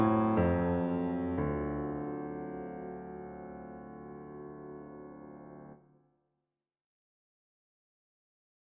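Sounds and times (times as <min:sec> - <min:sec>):
jazz piano miniature: 0:00.0 - 0:05.8.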